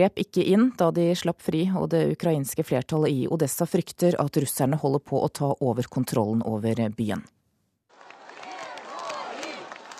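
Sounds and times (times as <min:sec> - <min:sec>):
speech: 0:00.0 - 0:07.4
crowd cheering as detainees walk out: 0:07.9 - 0:09.9.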